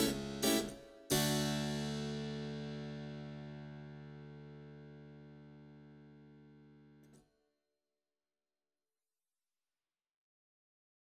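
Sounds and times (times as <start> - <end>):
waltz music: 0.0 - 3.5.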